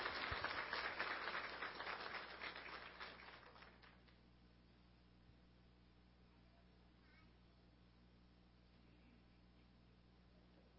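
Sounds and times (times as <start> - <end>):
audience applause: 0.0 - 4.0.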